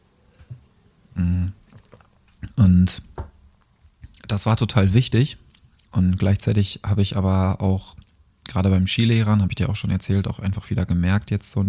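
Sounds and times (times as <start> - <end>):
person taking a quick sip of a drink: 0.4 - 2.6
speech: 2.9 - 3.1, 4.3 - 11.6.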